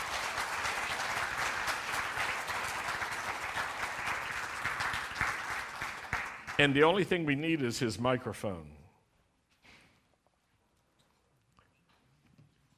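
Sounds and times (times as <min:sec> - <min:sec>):
audience applause welcoming a rabbi to the stage at a messianic congregation gathering: 0:00.0 - 0:07.5
speech: 0:06.6 - 0:08.8.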